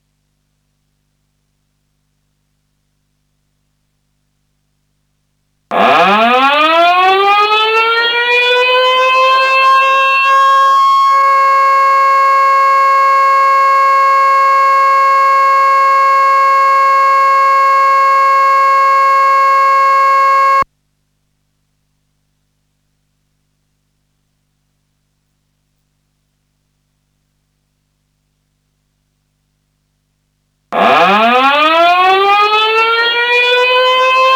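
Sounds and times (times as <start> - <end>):
siren: 5.7 - 20.6, 30.8 - 34.3.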